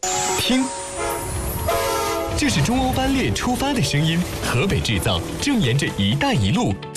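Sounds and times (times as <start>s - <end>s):
China-Europe Railway Express freight train horn: 0.2s - 2.8s
freight train rail clatter and rumble: 1.3s - 6.6s.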